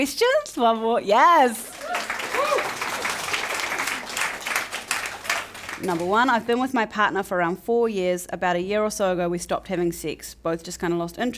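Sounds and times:
speech: 0.0 - 2.6, 5.8 - 11.3
audience applause at a live evening event: 1.6 - 6.6.

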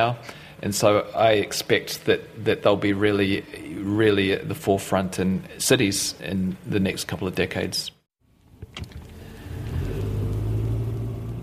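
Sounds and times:
speech: 0.0 - 8.0, 8.8 - 9.0
car driving along a road through the green Manawatu countryside: 8.3 - 11.4.

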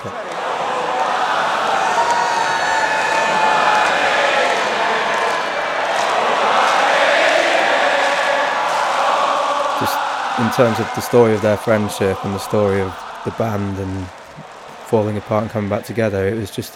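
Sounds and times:
speech: 0.0 - 0.2, 10.4 - 14.2, 14.9 - 16.7
huge festival crowd singing along: 0.0 - 15.7.

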